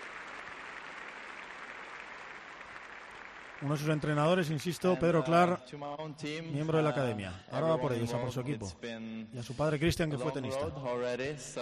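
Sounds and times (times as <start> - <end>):
applause: 0.0 - 5.4
speech: 3.6 - 11.6.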